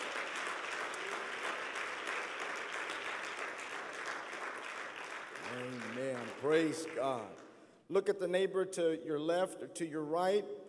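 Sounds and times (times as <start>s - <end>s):
audience applause: 0.0s - 7.4s
speech: 5.6s - 10.6s.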